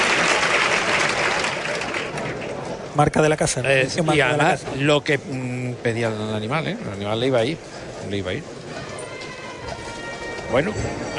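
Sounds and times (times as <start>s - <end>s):
bullring crowd ovation applauding and cheering: 0.0s - 2.8s
speech: 3.0s - 8.6s, 10.5s - 11.1s.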